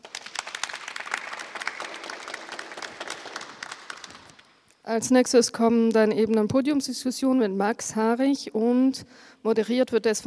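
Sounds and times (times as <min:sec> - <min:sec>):
audience applause: 0:00.0 - 0:04.6
speech: 0:04.9 - 0:10.2.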